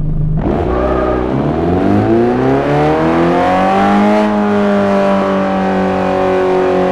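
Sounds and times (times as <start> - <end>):
car engine revving: 0.0 - 6.8.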